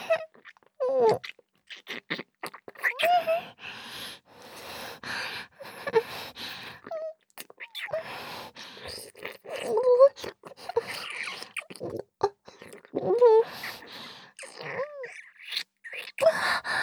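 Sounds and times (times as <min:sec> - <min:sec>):
ear licking with telephone effect: 0:00.3 - 0:03.3, 0:06.3 - 0:16.7.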